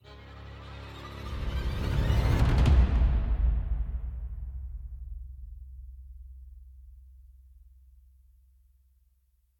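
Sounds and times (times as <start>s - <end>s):
action music intro: 1.0s - 5.7s.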